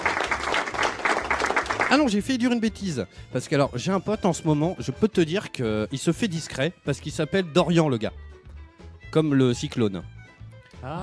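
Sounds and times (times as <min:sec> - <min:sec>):
applause: 0:00.0 - 0:02.3
speech: 0:01.9 - 0:08.3, 0:09.1 - 0:10.2, 0:10.8 - 0:11.0.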